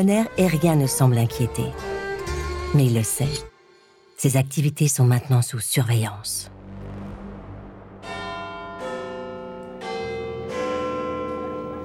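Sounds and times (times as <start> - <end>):
speech: 0.0 - 2.0, 2.7 - 3.5, 4.2 - 6.5
Big Ben clock tower bell chiming: 8.0 - 11.8.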